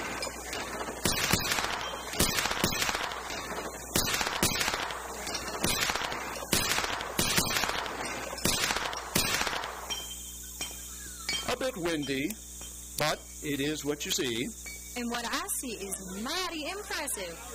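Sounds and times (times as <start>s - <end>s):
six-shooter pistol shots at clay targets: 0.0s - 9.9s
speech: 11.8s - 12.4s, 13.0s - 17.5s.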